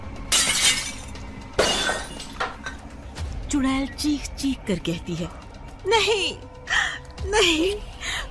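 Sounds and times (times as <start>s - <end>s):
glass fragments tinkling: 0.3s - 2.7s
mirror glass shattering: 0.3s - 2.8s
speech: 3.5s - 6.5s, 7.2s - 7.9s.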